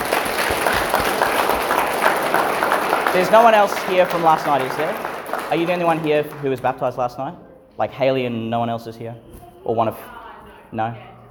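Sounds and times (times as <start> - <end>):
audience applause: 0.0 - 6.8
speech: 3.1 - 11.1.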